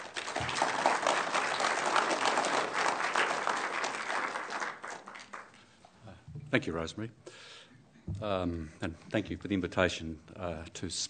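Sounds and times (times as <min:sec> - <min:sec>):
audience applause welcoming a lecturer: 0:00.0 - 0:05.6
speech: 0:06.5 - 0:07.5, 0:08.1 - 0:11.0.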